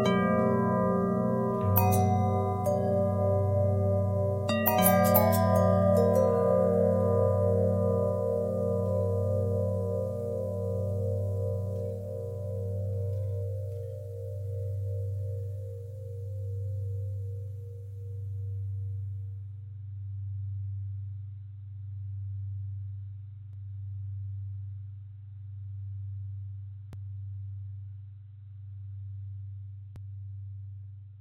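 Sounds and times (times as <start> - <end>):
long harmonic bell tone: 0.0 - 18.9.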